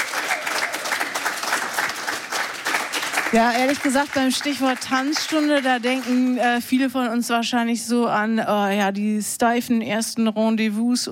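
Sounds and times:
audience applause: 0.0s - 6.6s
speech: 3.3s - 11.1s.

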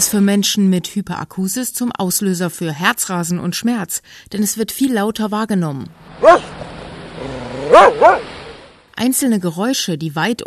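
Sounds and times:
speech: 0.0s - 8.4s, 9.0s - 10.4s
dog barking: 6.2s - 6.5s, 7.6s - 8.3s.

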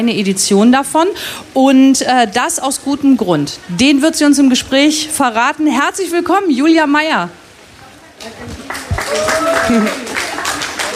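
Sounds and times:
speech: 0.0s - 7.4s, 8.2s - 10.1s
audience clapping with wet hands: 8.2s - 10.9s.

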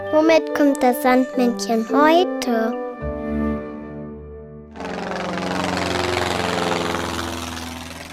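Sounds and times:
speech: 0.3s - 2.8s
airplane engine droning and revving: 4.7s - 8.1s.

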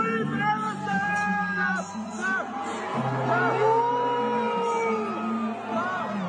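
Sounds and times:
arena crowd chanting and booing: 0.0s - 6.2s.

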